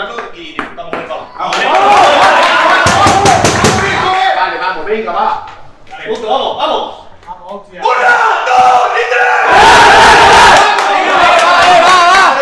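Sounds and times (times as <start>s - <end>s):
football team shouting a battle cry together: 1.6s - 4.3s, 7.8s - 12.3s.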